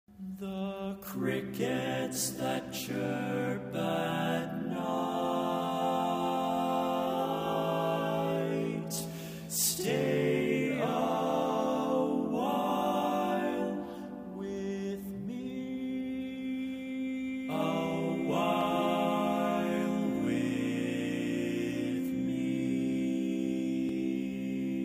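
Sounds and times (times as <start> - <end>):
barbershop tenor singing: 0.2 - 24.8.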